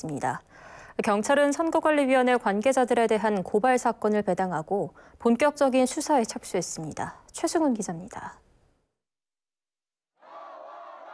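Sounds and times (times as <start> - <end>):
speech: 0.0 - 8.4
crowd of protesters chanting slogans: 10.2 - 11.1.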